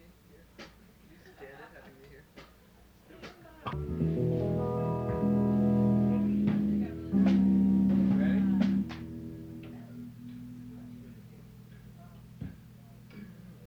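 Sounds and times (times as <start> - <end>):
instrument tuning: 3.8 - 13.2.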